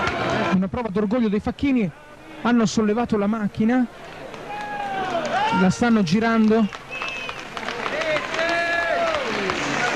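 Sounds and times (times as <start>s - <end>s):
speech: 0.5s - 4.2s, 5.5s - 6.8s
street festival crowd applauding and cheering as porters lift a processional machine: 4.0s - 9.9s.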